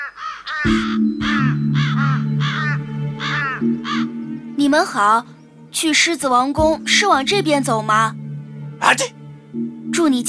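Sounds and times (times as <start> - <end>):
crows cawing: 0.0 - 5.7
speech: 0.6 - 1.2, 4.7 - 8.2, 8.8 - 10.2
low droning tone: 0.7 - 5.9, 6.6 - 10.1.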